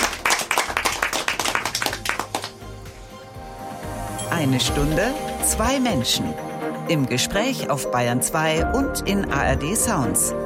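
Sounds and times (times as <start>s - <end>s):
studio audience applauding: 0.0s - 2.8s
speech: 4.4s - 10.4s.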